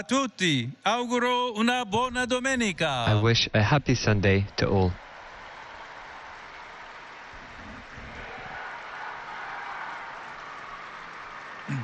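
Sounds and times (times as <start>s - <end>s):
speech: 0.0s - 5.0s
pilgrims applauding in St. Peter's Square: 4.0s - 11.8s.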